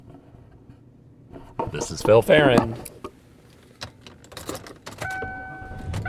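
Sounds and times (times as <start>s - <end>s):
speech: 1.4s - 3.0s
car engine hum heard from inside the car: 5.1s - 6.0s
sustained electronic chime tone: 5.1s - 6.0s.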